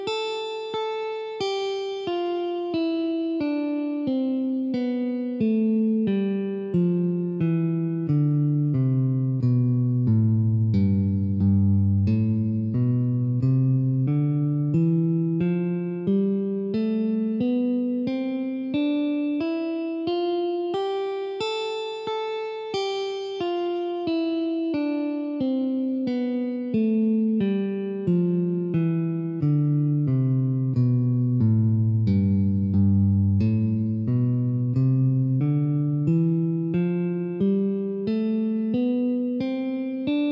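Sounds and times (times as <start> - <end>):
music in C major and A minor at 90 bpm: 0.0 - 40.3.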